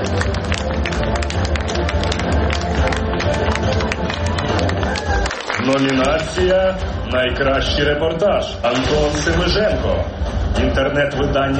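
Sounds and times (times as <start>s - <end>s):
crowd applauding: 0.0s - 6.9s
speech: 5.7s - 11.5s.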